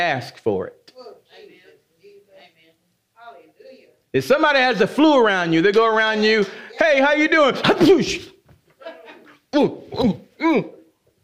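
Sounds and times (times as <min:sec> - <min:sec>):
speech: 0:00.0 - 0:00.8, 0:04.1 - 0:08.3, 0:09.5 - 0:10.8
person acting out sneezes: 0:09.5 - 0:11.0.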